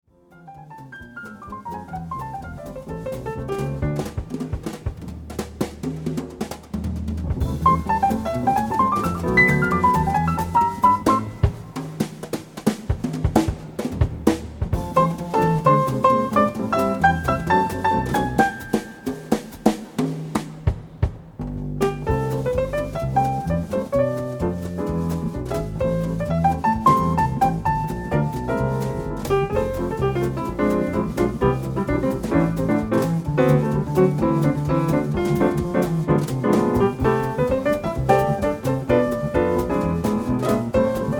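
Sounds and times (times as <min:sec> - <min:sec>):
instrumental music: 0:00.1 - 0:41.1.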